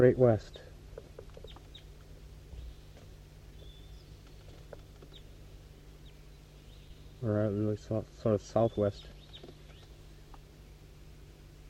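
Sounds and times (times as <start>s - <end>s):
speech: 0.0s - 0.7s, 7.2s - 9.2s
steady low droning hum: 0.0s - 11.6s
wild bird chirping and clucking: 0.4s - 7.1s.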